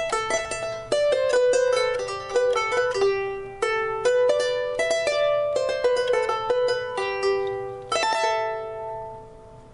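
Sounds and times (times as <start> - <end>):
harp playing: 0.0 - 9.6.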